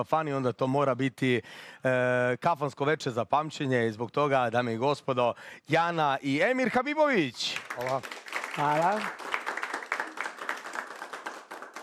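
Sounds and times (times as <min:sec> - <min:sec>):
speech: 0:00.0 - 0:09.3
applause at a kafana music evening after a singer's performance: 0:07.4 - 0:11.8.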